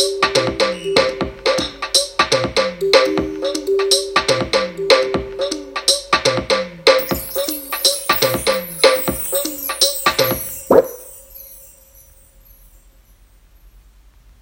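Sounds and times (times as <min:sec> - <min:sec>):
beat recorded as a voice memo: 0:00.0 - 0:11.3.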